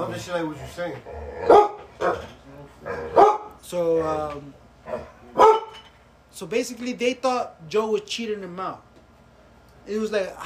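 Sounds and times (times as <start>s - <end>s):
speech: 0.0s - 2.9s, 3.7s - 5.1s, 6.4s - 8.9s, 9.8s - 10.4s
guard dog barking: 1.4s - 2.3s, 3.1s - 3.5s, 4.9s - 5.8s.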